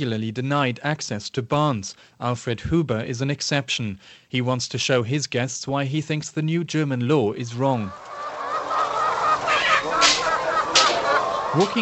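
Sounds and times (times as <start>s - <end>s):
speech: 0.0s - 8.2s, 11.6s - 11.7s
laying hens clucking in cages: 7.6s - 11.7s.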